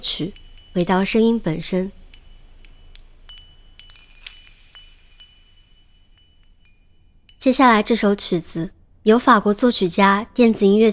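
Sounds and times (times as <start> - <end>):
speech: 0.0 - 2.0, 7.4 - 10.9
wind chimes: 0.0 - 8.7.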